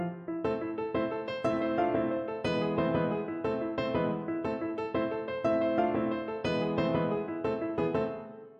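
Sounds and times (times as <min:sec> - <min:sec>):
piano piece: 0:00.0 - 0:08.5.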